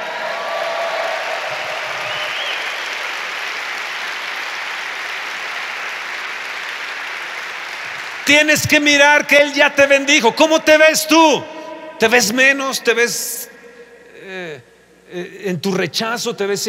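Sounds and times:
audience applause: 0.0s - 8.8s
speech: 8.3s - 13.5s, 15.1s - 16.6s.

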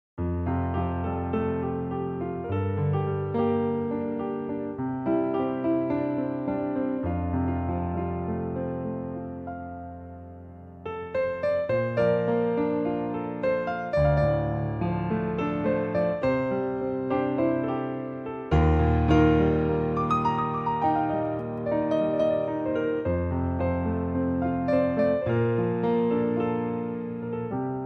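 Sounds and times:
slow piano: 0.2s - 27.8s.

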